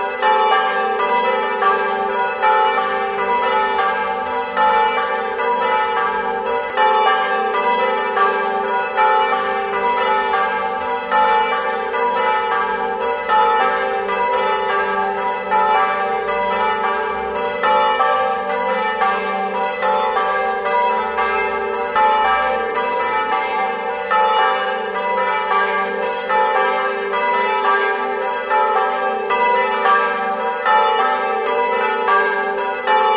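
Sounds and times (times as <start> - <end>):
bells: 0.0 - 33.1.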